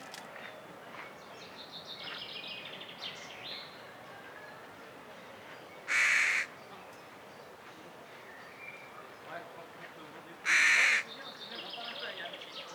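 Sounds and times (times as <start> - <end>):
carrion crow Corvus corone cawing: 5.9 - 6.5, 10.5 - 11.0.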